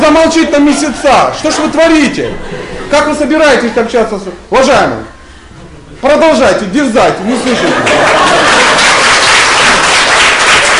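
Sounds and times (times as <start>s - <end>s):
speech: 0.1s - 5.1s, 6.0s - 8.4s
laughter: 0.6s - 4.0s, 7.2s - 9.8s
audience applause: 7.4s - 10.7s.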